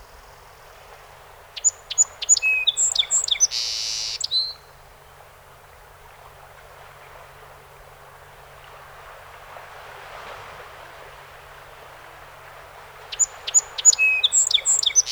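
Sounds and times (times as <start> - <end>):
song sparrow singing: 1.5 - 4.7, 13.0 - 15.0.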